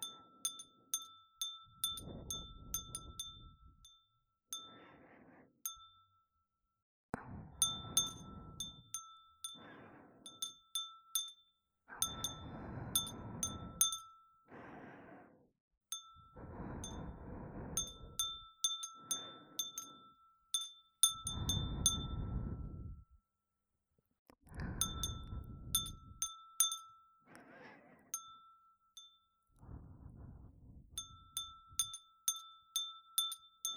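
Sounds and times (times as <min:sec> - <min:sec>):
glass wind chime: 0:00.0 - 0:04.8, 0:05.7 - 0:06.3, 0:07.6 - 0:14.4, 0:15.9 - 0:17.2, 0:17.8 - 0:23.1, 0:24.8 - 0:27.3, 0:28.1 - 0:29.6, 0:31.0 - 0:33.7
breathing: 0:04.6 - 0:05.6, 0:07.2 - 0:10.6, 0:11.9 - 0:20.1, 0:21.1 - 0:23.1, 0:24.5 - 0:26.2, 0:27.3 - 0:28.2, 0:29.6 - 0:31.2.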